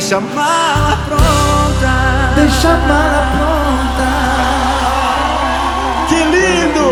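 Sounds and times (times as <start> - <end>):
speech: 0.1 - 1.5, 2.4 - 4.1, 6.2 - 6.8
audience applause: 4.4 - 6.8.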